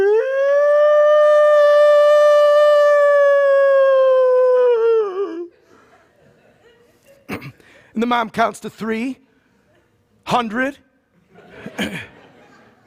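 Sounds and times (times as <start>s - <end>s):
voice imitating air-raid siren wail: 0.0s - 5.5s
laughter: 5.2s - 7.4s, 11.2s - 12.8s
speech: 8.0s - 9.2s, 10.3s - 10.8s, 11.8s - 12.1s.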